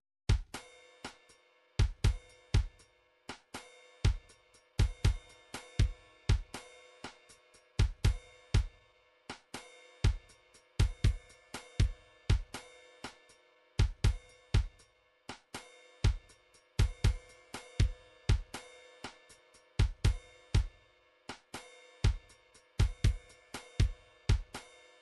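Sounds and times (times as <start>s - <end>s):
MIDI drum patterns: 0.3s - 13.2s, 13.8s - 18.6s, 19.8s - 24.7s.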